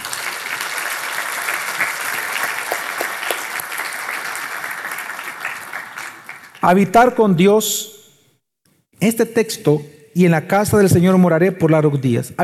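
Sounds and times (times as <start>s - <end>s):
audience applause: 0.0s - 6.8s
speech: 6.6s - 7.9s, 9.0s - 12.4s.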